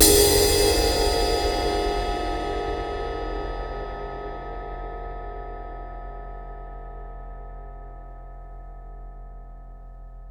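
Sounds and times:
impact drum hits: 0.0s - 3.3s
cymbal hit: 0.0s - 4.4s.

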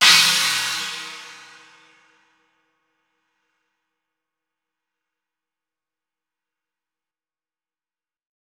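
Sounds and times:
china cymbal: 0.0s - 1.8s.

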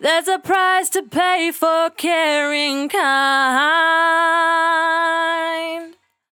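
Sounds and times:
velvet vocal in D: 0.0s - 6.0s.

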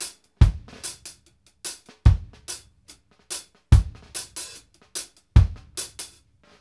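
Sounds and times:
reggae kick drum: 0.4s - 0.8s, 2.1s - 2.5s, 3.7s - 4.2s, 5.4s - 6.0s.

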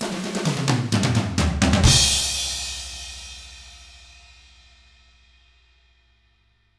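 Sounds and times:
hard rock drums: 0.0s - 3.8s.

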